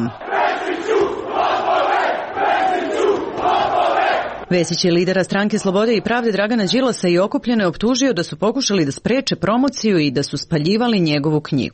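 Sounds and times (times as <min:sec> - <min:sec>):
speech: 0:00.0 - 0:01.0, 0:04.5 - 0:11.7
crowd shouting and whistling: 0:00.0 - 0:04.5.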